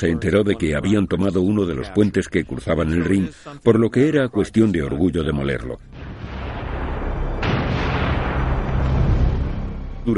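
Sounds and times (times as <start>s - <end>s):
speech: 0.0s - 5.9s
low rumble: 5.8s - 10.1s
artillery shells exploding near a bridge over the Rhine: 5.9s - 9.9s.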